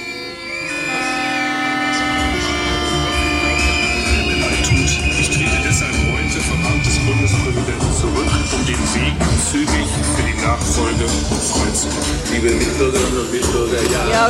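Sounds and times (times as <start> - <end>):
vuvuzelas blaring: 0.0 - 10.5
noisy crowd: 0.0 - 14.2
protest whistles blowing: 2.8 - 9.2.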